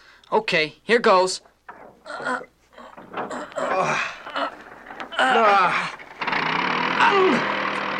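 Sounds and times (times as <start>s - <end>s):
speech: 0.3s - 1.5s, 2.1s - 2.5s, 3.2s - 4.2s, 5.2s - 6.0s, 7.0s - 7.6s
early airplane motor starting and running: 3.0s - 7.9s.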